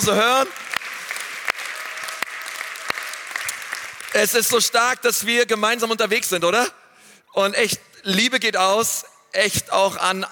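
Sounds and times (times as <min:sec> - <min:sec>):
speech: 0:00.0 - 0:00.7, 0:04.2 - 0:10.2
audience applause: 0:00.0 - 0:04.4.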